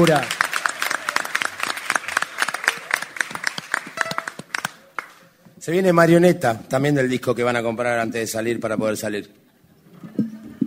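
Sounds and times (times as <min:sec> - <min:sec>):
speech: 0:00.0 - 0:00.4, 0:05.6 - 0:09.4
audience applause: 0:00.0 - 0:05.2.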